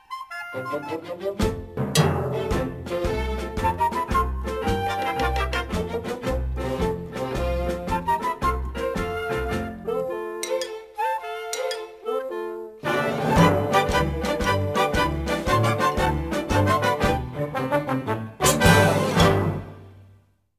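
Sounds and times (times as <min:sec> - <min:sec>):
main title music: 0:00.5 - 0:12.1, 0:12.8 - 0:20.2.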